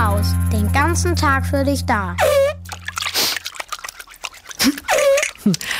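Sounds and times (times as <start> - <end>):
speech: 0.1 - 2.5, 5.5 - 5.7
water splashing from feet in a shallow footbath: 2.3 - 5.7.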